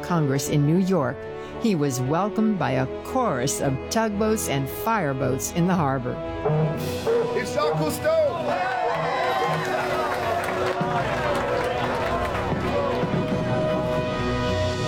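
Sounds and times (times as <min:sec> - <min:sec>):
speech: 0:00.1 - 0:08.7
crowd cheering: 0:07.7 - 0:14.7.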